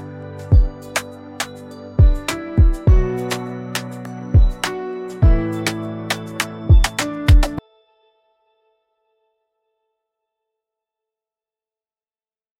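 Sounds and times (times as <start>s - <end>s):
music beat: 0.0s - 7.6s.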